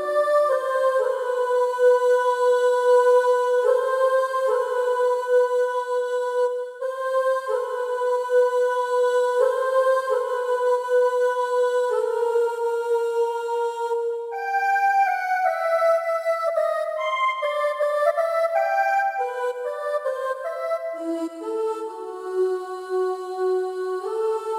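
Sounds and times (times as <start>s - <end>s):
choir singing ooh in E minor: 0.0s - 24.5s.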